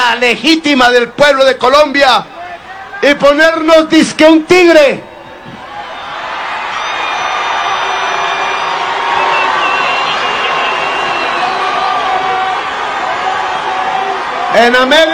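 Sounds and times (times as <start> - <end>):
speech: 0.1 - 2.3, 3.0 - 5.1, 14.6 - 15.1
large rally crowd chanting: 5.1 - 15.1
rally crowd applause: 5.6 - 15.1.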